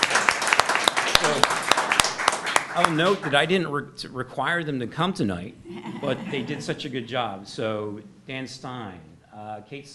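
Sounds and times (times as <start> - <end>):
audience applause at a public meeting: 0.0 - 3.3
speech: 2.8 - 9.9
laughter: 5.7 - 7.0.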